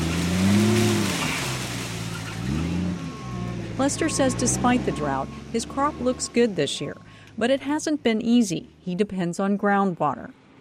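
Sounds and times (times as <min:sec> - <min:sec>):
claw-shaped machine shaking walnuts from trees: 0:00.0 - 0:02.8
speech: 0:03.8 - 0:10.4.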